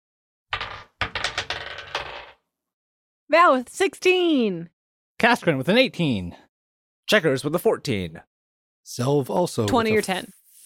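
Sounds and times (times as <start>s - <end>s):
dice rolling on table: 0.6s - 2.4s
speech: 3.3s - 6.4s, 7.1s - 10.4s.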